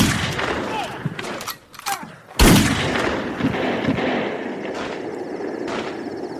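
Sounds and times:
gunshot in a radio drama: 0.0 - 0.8, 2.4 - 5.0, 5.7 - 6.0.

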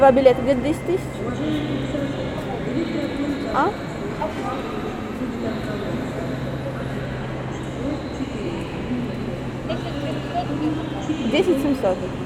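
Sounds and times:
speech: 0.0 - 2.1, 2.7 - 6.5, 7.8 - 12.2
low steady hum: 0.0 - 12.2
murmur of many indistinct voices at Yaroslavsky railway station Moscow: 0.0 - 12.2.

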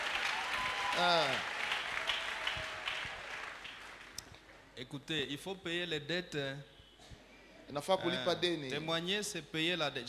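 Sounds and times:
church congregation applauding and cheering the Lord: 0.0 - 4.2
speech: 1.0 - 1.6, 4.8 - 6.7, 7.7 - 10.0.

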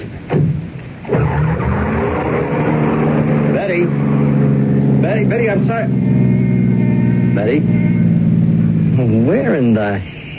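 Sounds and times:
car engine roaring and revving as a woman drives away: 0.3 - 10.3
car tires squealing and skidding: 1.0 - 8.1
speech: 5.2 - 6.3, 7.4 - 7.9, 9.0 - 10.2.

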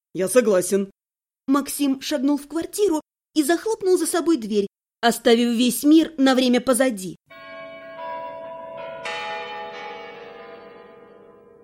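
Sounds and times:
speech: 0.2 - 7.4
chiming clock striking midnight: 7.3 - 11.6.

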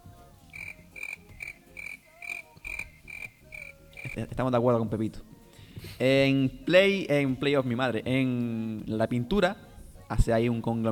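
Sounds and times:
crickets chirping sound effect: 0.5 - 4.3
speech: 4.2 - 5.3, 6.0 - 10.9.

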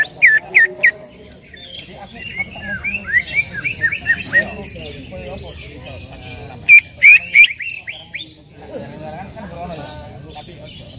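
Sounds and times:
Greater green leafbird trilling and chipping: 0.0 - 8.3.

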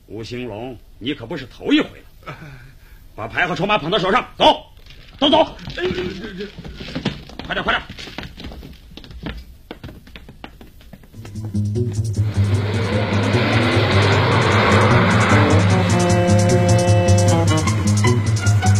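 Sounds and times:
speech: 0.1 - 8.2, 11.5 - 12.8
laughter: 2.2 - 2.7, 5.5 - 6.7
knocks and clatters: 4.8 - 12.2
car engine starting and rumbling: 11.2 - 18.7
road noise of car driving off: 11.2 - 18.7.

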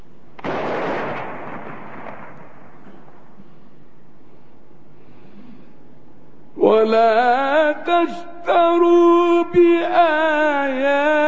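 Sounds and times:
imsak cannon fired during Ramadan: 0.4 - 3.6
speech: 6.7 - 11.2.

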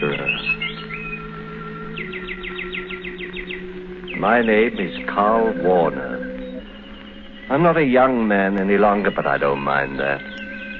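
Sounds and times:
birdsong: 0.0 - 10.7
speech: 4.2 - 6.0, 7.5 - 10.3.

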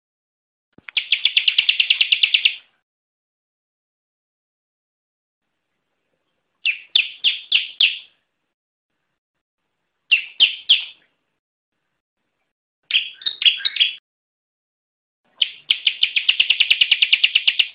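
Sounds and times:
bar-winged prinia song with rapid trill and ringing chirps: 0.9 - 2.7, 6.6 - 8.2, 10.1 - 11.0, 12.9 - 14.0, 15.3 - 17.7.

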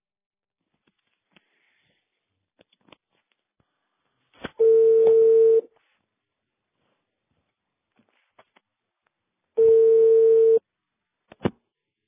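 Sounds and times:
telephone line tone: 4.6 - 5.7, 9.6 - 10.6.

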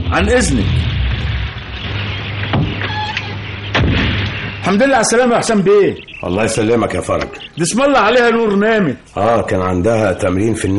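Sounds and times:
low hum: 0.0 - 9.5
speech: 0.1 - 0.8, 4.6 - 10.7
metal villa gate grinding open: 0.7 - 5.5.

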